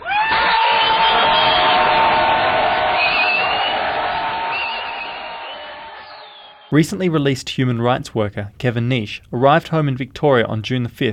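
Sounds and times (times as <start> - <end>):
large crowd yelling and screaming: 0.0 - 6.7
speech: 6.7 - 11.1.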